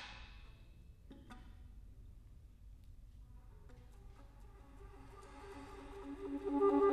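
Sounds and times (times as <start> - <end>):
alto flute: 3.9 - 6.9.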